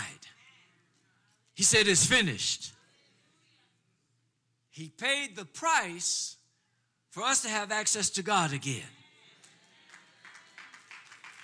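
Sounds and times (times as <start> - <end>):
speech: 1.6 - 2.8, 4.8 - 6.4, 7.1 - 9.0
faint scattered audience clapping: 9.3 - 11.4.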